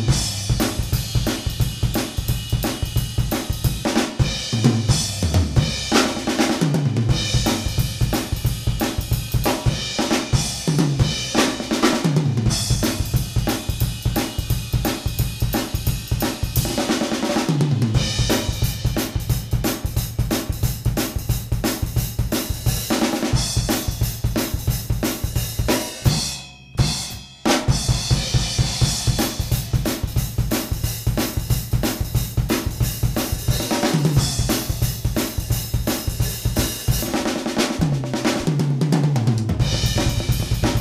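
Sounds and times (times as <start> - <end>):
up-tempo 12/8 rock shuffle drum beat at 175 BPM: 0.0 - 40.7.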